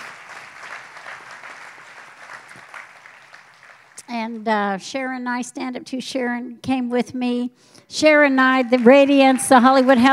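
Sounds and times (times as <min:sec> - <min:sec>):
crowd clapping: 0:00.0 - 0:04.4, 0:08.5 - 0:10.1
speech: 0:04.1 - 0:10.1.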